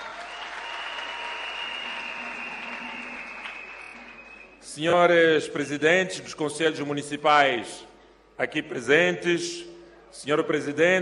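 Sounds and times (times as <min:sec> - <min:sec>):
audience applause: 0:00.0 - 0:04.6
speech: 0:04.8 - 0:10.9.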